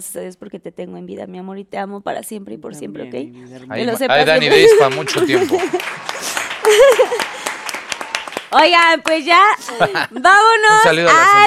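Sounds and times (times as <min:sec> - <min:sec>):
speech: 0:00.0 - 0:07.4, 0:08.5 - 0:11.4
laughter: 0:04.0 - 0:07.9, 0:09.4 - 0:11.4
applause: 0:04.1 - 0:10.1.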